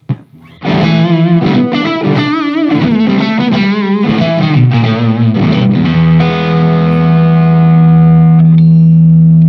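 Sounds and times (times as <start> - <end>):
electric guitar through overdrive pedal: 0.0 - 9.4.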